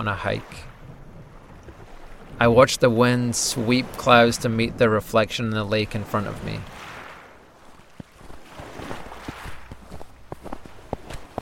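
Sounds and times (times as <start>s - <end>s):
speech: 0.0s - 0.7s, 2.4s - 6.8s
footsteps crunching on snow: 7.6s - 11.4s.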